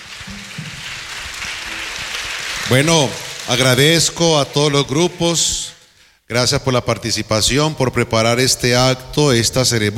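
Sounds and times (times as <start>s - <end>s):
audience applause: 0.0s - 5.4s
speech: 2.7s - 5.6s, 6.3s - 9.9s.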